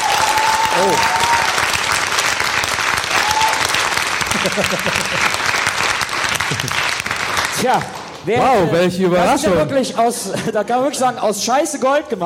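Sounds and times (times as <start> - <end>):
audience applause: 0.0 - 9.0
speech: 0.8 - 1.1, 4.4 - 5.6, 6.5 - 7.0, 7.6 - 12.2
laughter: 4.2 - 5.5, 6.3 - 7.0, 10.2 - 10.7.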